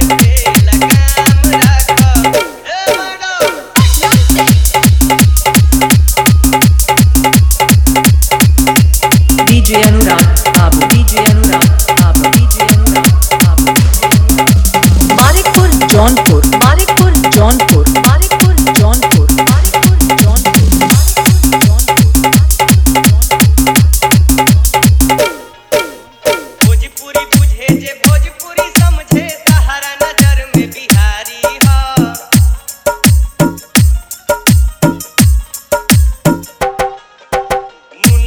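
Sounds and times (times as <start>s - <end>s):
Bhojpuri dholak bass mix: 0.0s - 38.2s.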